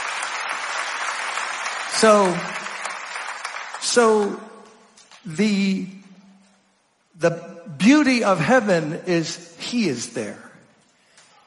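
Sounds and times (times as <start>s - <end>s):
audience clapping hands: 0.0s - 5.3s
speech: 2.0s - 2.6s, 3.8s - 4.5s, 5.2s - 6.0s, 7.2s - 10.5s.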